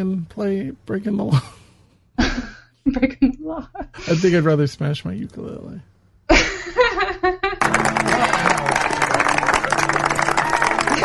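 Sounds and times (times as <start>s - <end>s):
speech: 0.0s - 1.6s, 2.8s - 7.4s
laughter: 2.2s - 4.0s, 6.3s - 7.7s
dense clapping of many hands: 7.6s - 11.0s.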